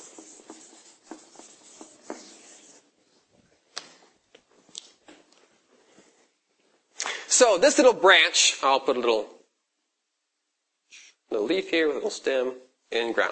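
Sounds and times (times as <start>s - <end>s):
eraser rubbing out a small drawing of a tree: 0.0s - 3.2s
speech: 7.4s - 9.4s, 11.5s - 13.3s.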